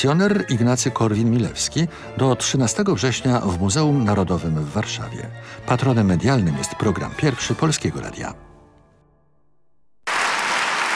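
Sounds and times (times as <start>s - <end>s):
speech: 0.0s - 8.5s
applause in a Toyota advertisement: 10.0s - 10.9s.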